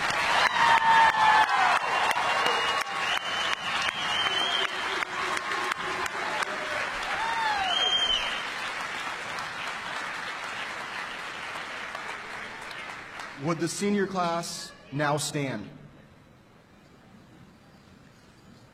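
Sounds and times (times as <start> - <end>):
graduation ceremony audience applauding: 0.0 - 14.2
graduation audience whoops and shouts: 0.2 - 8.4
speech: 13.5 - 15.8.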